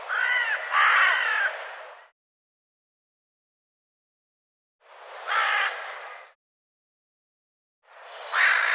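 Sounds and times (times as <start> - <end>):
bird harsh hoarse cawing calls: 0.0 - 1.7, 5.2 - 6.4, 8.3 - 8.7.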